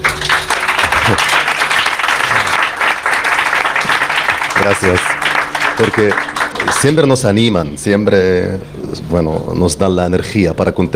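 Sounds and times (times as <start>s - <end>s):
applause: 0.0s - 7.2s
speech: 4.6s - 5.2s, 5.8s - 10.9s.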